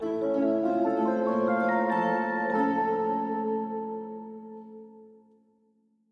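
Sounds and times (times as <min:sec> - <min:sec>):
sleep jingle: 0:00.0 - 0:04.6.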